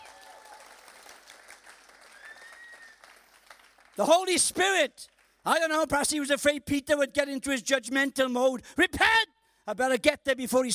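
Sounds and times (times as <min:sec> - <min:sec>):
whistle and cheer: 0:00.0 - 0:00.9, 0:02.0 - 0:03.3
audience clapping: 0:00.0 - 0:05.4
speech: 0:04.0 - 0:10.7.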